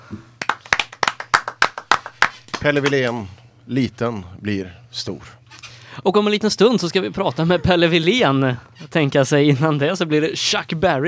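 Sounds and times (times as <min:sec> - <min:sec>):
applause: 0:00.4 - 0:03.3
speech: 0:02.6 - 0:05.4, 0:06.0 - 0:11.0.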